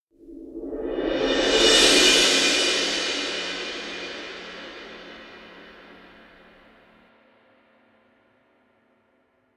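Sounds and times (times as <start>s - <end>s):
cymbal crescendo: 0.8s - 7.0s.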